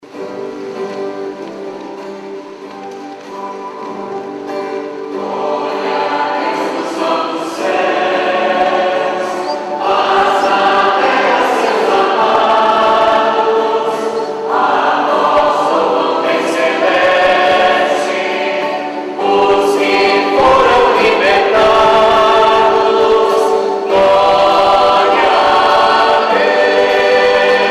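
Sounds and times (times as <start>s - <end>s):
people singing a hymn: 4.5s - 27.7s.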